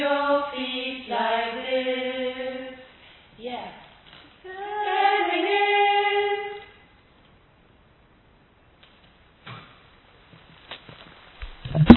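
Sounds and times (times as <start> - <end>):
soprano voice: 0.0 - 6.7.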